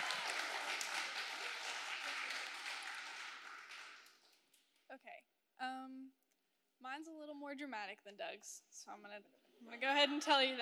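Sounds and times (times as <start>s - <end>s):
audience applause for a speaker: 0.0s - 4.4s
speech: 5.0s - 6.2s, 6.8s - 10.6s.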